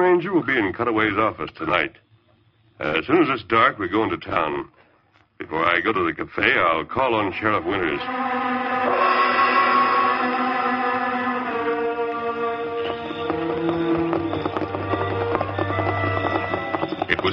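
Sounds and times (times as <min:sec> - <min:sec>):
speech: 0:00.0 - 0:02.1, 0:02.8 - 0:04.8, 0:05.4 - 0:08.6
sustained tonal music: 0:07.4 - 0:17.2
horse hooves clip-clopping as a rider reins in: 0:10.8 - 0:17.3.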